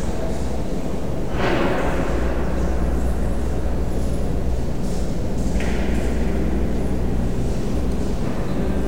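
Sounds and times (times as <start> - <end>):
garage ambience: 0.2 - 8.8.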